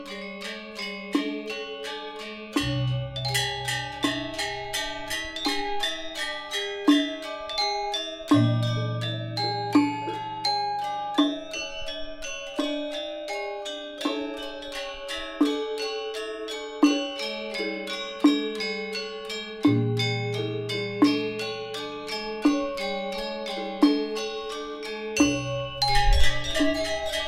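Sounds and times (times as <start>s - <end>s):
gangsa in a gamelan, slow section: 0.0s - 27.2s.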